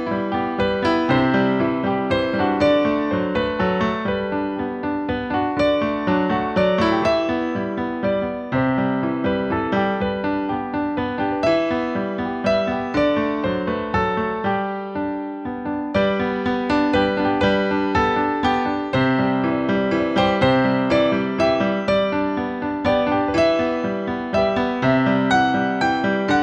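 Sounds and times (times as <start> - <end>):
piano waltz: 0.0 - 26.4.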